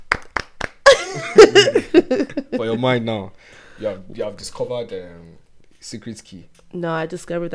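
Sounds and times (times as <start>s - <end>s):
two people clapping: 0.0s - 1.4s
laughter: 0.9s - 3.1s
speech: 1.2s - 7.5s.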